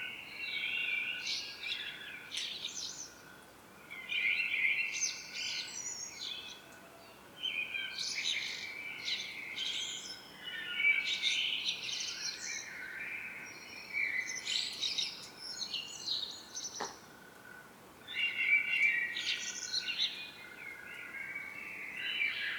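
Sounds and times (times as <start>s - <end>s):
common blackbird Turdus merula song: 0.0s - 22.5s.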